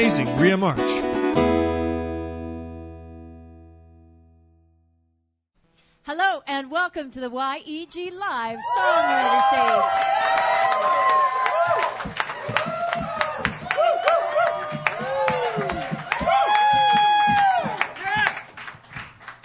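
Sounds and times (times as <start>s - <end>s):
speech: 0.0s - 1.5s, 6.0s - 11.9s
crowd whooping and shouting: 8.5s - 18.4s
crowd clapping: 8.6s - 19.4s.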